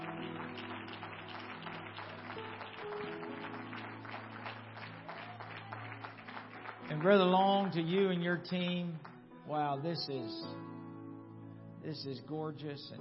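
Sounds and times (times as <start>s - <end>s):
audience applause: 0.0s - 8.2s
speech: 6.9s - 10.7s, 11.8s - 13.0s.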